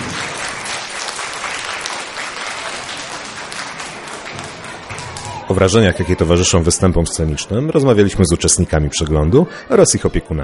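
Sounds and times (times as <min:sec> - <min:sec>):
audience applause: 0:00.0 - 0:06.7
speech: 0:05.5 - 0:10.4.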